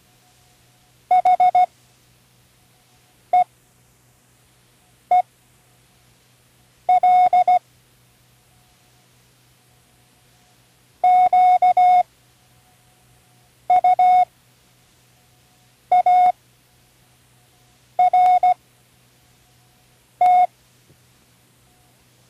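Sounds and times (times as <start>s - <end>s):
Morse code spelling words: 1.1s - 1.7s, 6.9s - 7.6s, 11.0s - 12.1s, 13.7s - 14.3s, 15.9s - 16.4s, 18.0s - 18.6s, 20.2s - 20.5s.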